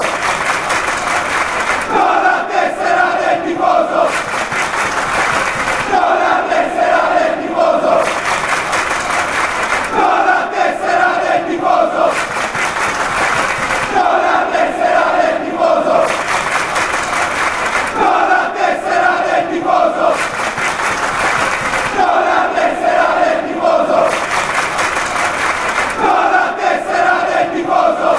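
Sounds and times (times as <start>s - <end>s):
crowd chanting: 0.0s - 28.1s.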